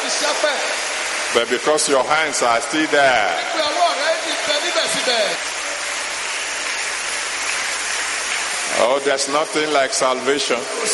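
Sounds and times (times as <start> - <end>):
speech: 0.2 - 5.5, 8.7 - 10.9
audience clapping: 4.6 - 8.7.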